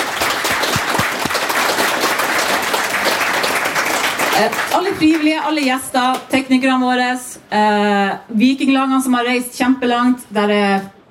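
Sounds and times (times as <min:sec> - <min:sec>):
audience applause: 0:00.0 - 0:05.4
speech: 0:04.4 - 0:11.0.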